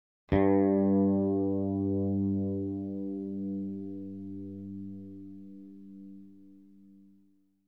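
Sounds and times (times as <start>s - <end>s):
bass note G2: 0.4s - 7.0s.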